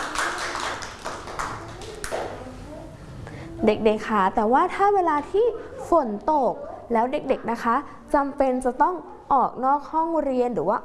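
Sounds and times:
children clapping hands: 0:00.0 - 0:02.4
speech: 0:03.6 - 0:10.8.

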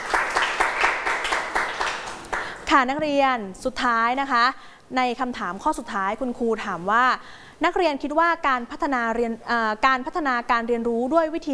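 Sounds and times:
students in a class clapping for themselves: 0:00.0 - 0:02.7
speech: 0:02.7 - 0:11.5.

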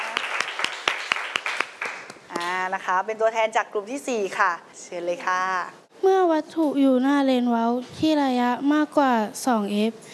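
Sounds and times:
students clapping in a physics classroom: 0:00.0 - 0:02.5
speech: 0:02.7 - 0:10.1.

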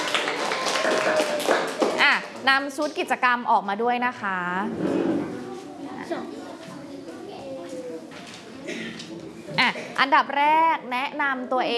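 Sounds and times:
students clapping for a classmate: 0:00.0 - 0:02.4
speech: 0:02.5 - 0:06.4, 0:10.0 - 0:11.7.

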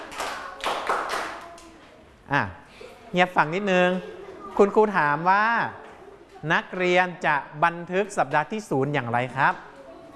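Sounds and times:
children clapping: 0:00.0 - 0:01.8
speech: 0:02.3 - 0:05.8, 0:06.4 - 0:09.7.

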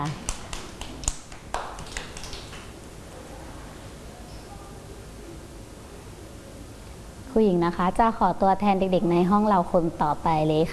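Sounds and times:
children clapping: 0:00.2 - 0:02.8
speech: 0:07.4 - 0:10.7.

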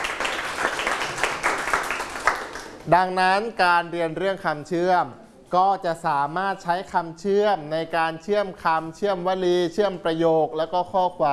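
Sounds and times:
classroom applause: 0:00.0 - 0:02.9
speech: 0:02.9 - 0:11.3.

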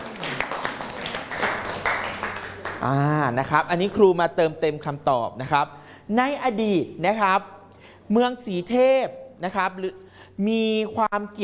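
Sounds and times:
classroom applause: 0:00.0 - 0:03.1
speech: 0:02.8 - 0:11.4.

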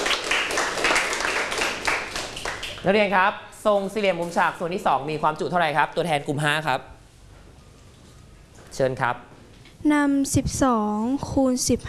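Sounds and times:
students clapping in a classroom during a mathematics lesson: 0:00.0 - 0:02.9
speech: 0:02.8 - 0:06.9, 0:08.8 - 0:11.8.

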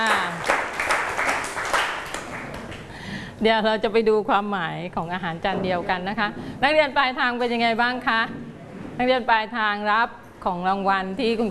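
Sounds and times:
students clapping: 0:00.0 - 0:03.0
speech: 0:03.4 - 0:08.4, 0:09.0 - 0:11.4.

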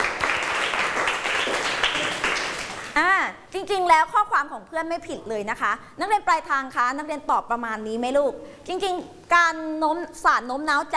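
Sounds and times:
students clapping for classmates: 0:00.0 - 0:03.0
speech: 0:03.7 - 0:10.9.

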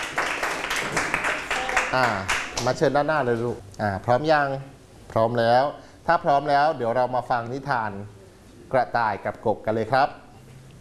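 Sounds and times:
children clapping hands: 0:00.0 - 0:02.8
speech: 0:01.9 - 0:10.2.

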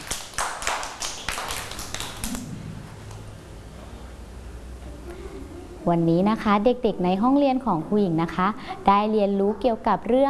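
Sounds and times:
group of children clapping hands: 0:00.0 - 0:02.5
speech: 0:05.8 - 0:10.2.

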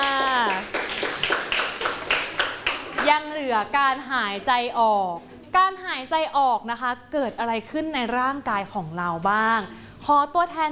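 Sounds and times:
classroom clapping for a student: 0:00.0 - 0:03.4
speech: 0:03.5 - 0:10.6.

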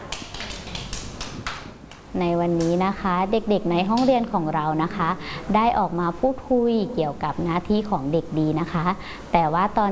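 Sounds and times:
children clapping in a classroom: 0:00.0 - 0:01.7
speech: 0:02.2 - 0:09.9.

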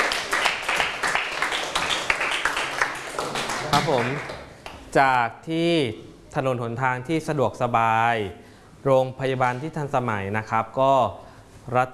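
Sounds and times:
classroom clapping for classmates: 0:00.0 - 0:04.8
speech: 0:03.7 - 0:11.9.

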